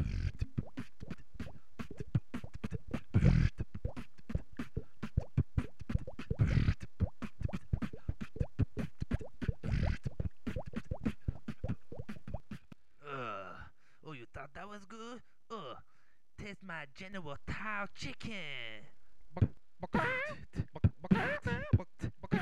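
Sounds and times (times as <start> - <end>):
beatboxing imitating water: 0.0 - 12.8, 19.3 - 22.4
speech: 16.8 - 18.9.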